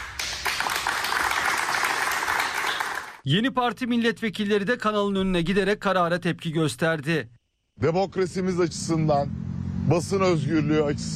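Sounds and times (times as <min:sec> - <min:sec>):
studio staff applauding in protest: 0:00.0 - 0:03.2
speech: 0:03.2 - 0:11.1.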